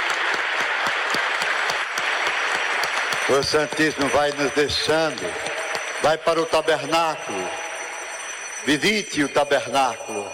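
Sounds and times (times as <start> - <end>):
audience applause: 0.0 - 5.8
speech: 3.3 - 7.6, 8.6 - 10.3.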